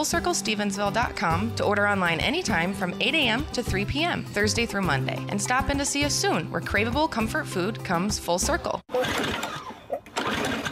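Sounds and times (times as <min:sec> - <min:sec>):
speech: 0:00.0 - 0:09.3
sputtering lawn mower barely running: 0:08.9 - 0:10.7.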